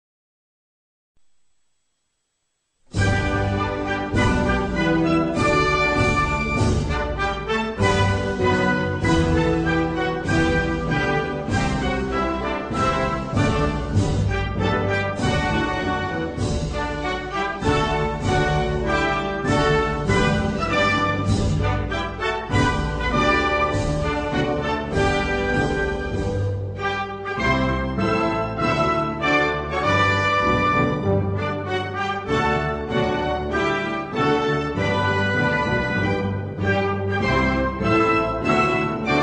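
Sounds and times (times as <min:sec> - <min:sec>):
national anthem: 0:02.9 - 0:39.2.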